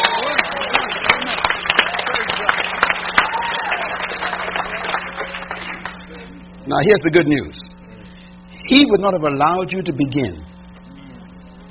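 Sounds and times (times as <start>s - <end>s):
audience clapping: 0.0s - 6.2s
speech: 6.7s - 7.6s, 8.7s - 10.5s.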